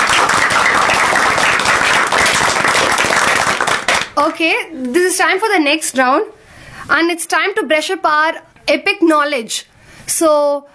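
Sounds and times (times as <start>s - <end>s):
audience applause: 0.0s - 4.2s
speech: 4.4s - 10.7s.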